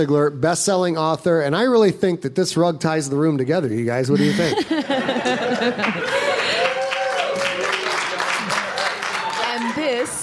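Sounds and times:
speech: 0.0s - 6.2s
laughter: 4.2s - 6.8s
live studio audience applause at Sigler Fest 2017: 5.3s - 10.2s.

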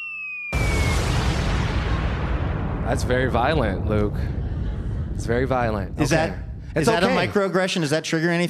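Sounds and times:
falling whistle of a bomb sound effect: 0.0s - 1.6s
bomb sound effect roaring explosion blast: 0.5s - 7.4s
speech: 2.9s - 4.4s, 5.2s - 8.4s.

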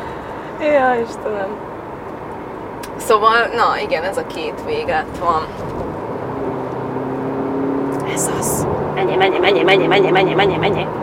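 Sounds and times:
speech: 0.6s - 1.7s, 3.0s - 5.8s, 8.2s - 11.0s
car engine revving: 4.7s - 11.0s.

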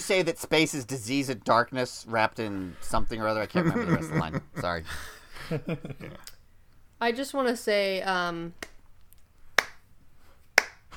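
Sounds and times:
speech: 0.0s - 6.4s, 7.0s - 8.7s
laughter: 3.4s - 6.2s
slow clap: 9.6s - 10.9s.

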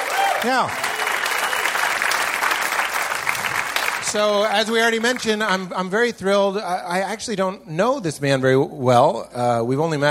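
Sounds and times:
audience clapping: 0.0s - 5.7s
speech: 0.4s - 0.8s, 4.1s - 10.0s.

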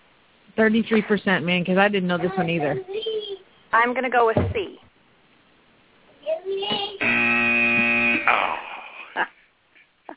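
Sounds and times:
speech: 0.6s - 3.0s, 3.7s - 4.8s
quiz wrong-answer buzzer: 7.0s - 8.6s.

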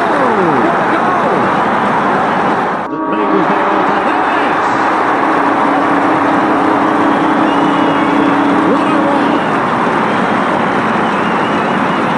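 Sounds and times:
football crowd roaring after a goal: 0.4s - 11.8s.

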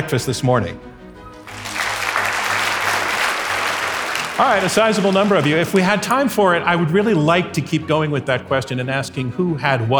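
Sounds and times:
speech: 0.0s - 0.9s, 4.4s - 9.9s
audience applause: 1.4s - 6.0s.

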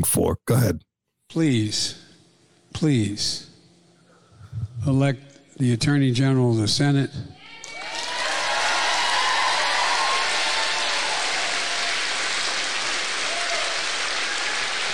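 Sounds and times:
speech: 0.0s - 2.0s, 2.7s - 3.5s, 4.8s - 7.3s
crowd cheering: 7.5s - 14.9s
applause: 7.6s - 14.9s.

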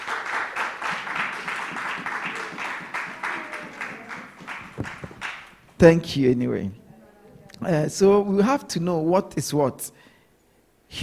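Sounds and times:
audience clapping: 0.0s - 5.8s
speech: 5.8s - 6.8s, 7.6s - 10.0s.

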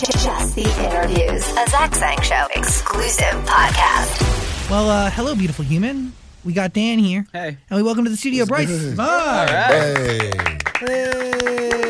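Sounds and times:
speech: 0.0s - 11.8s
person clapping: 9.4s - 11.8s.

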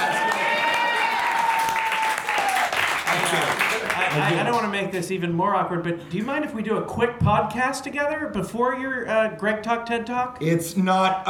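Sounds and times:
audience applause: 0.0s - 4.8s
speech: 4.2s - 11.2s.

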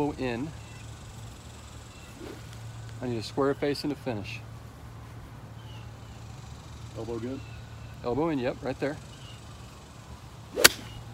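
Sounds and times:
speech: 0.0s - 0.6s, 3.0s - 4.5s, 7.0s - 9.1s
pitching wedge swung on a golf course: 2.0s - 2.9s, 10.5s - 11.1s
pitching wedge striking a golf ball: 10.6s - 11.0s.

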